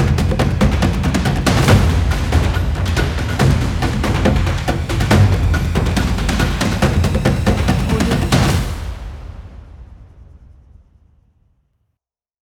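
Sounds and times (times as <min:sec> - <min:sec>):
epic tribal drums: 0:00.0 - 0:09.6.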